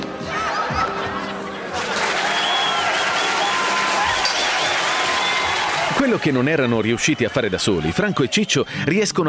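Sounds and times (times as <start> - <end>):
laughter: 0.2 - 4.0
audience applause after a performance: 1.6 - 8.6
speech: 6.1 - 9.2.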